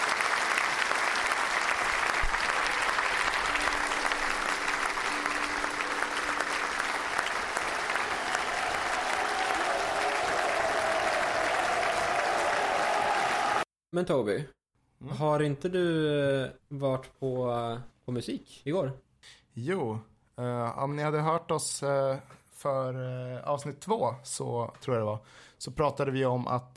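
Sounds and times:
audience cheering: 0.0s - 13.7s
speech: 14.0s - 26.7s.

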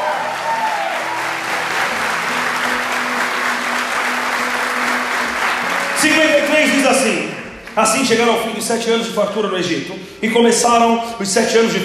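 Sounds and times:
audience applauding: 0.0s - 8.5s
speech: 6.0s - 11.8s.

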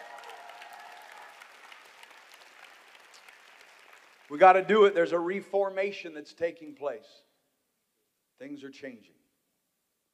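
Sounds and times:
audience hand clap of praise: 0.0s - 4.6s
speech: 4.3s - 7.3s, 8.4s - 9.2s.

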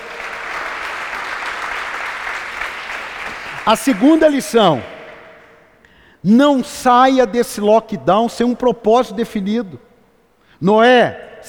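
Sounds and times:
audience applause: 0.0s - 5.6s
speech: 3.7s - 4.9s, 6.2s - 9.9s, 10.6s - 11.4s.

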